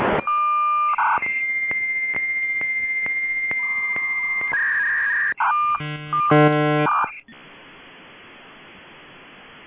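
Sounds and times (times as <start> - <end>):
V.92 modem handshake sounds: 0.2 - 7.5.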